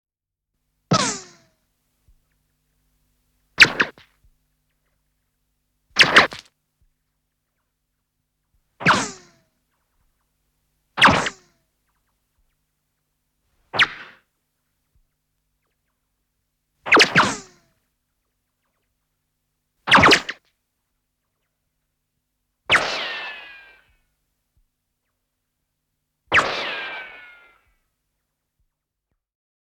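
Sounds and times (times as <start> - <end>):
bullet ricochets: 0.9 - 1.5, 3.6 - 4.0, 6.0 - 6.5, 8.8 - 9.4, 11.0 - 11.5, 13.7 - 14.3, 16.9 - 17.7, 19.9 - 20.4, 22.7 - 24.0, 26.3 - 27.8.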